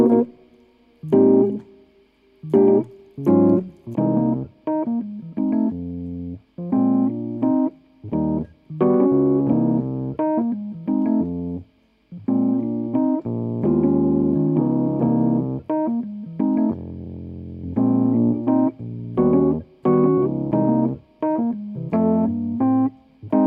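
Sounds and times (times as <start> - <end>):
hip hop keys: 0.0 - 1.8, 2.4 - 11.6, 12.2 - 23.4.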